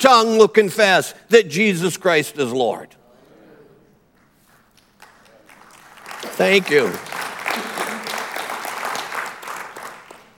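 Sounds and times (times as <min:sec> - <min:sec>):
speech: 0:00.0 - 0:03.0, 0:06.3 - 0:07.2
audience clapping: 0:04.1 - 0:10.3.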